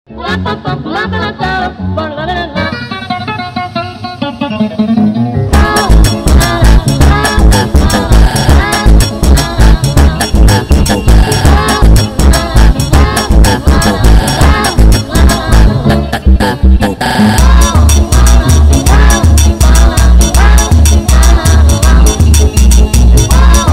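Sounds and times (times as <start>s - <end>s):
sped up funk music: 0.1s - 23.7s.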